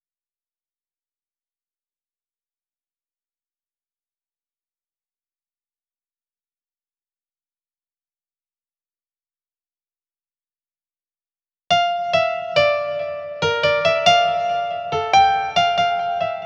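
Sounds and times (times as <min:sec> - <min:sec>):
piano: 0:11.7 - 0:16.4.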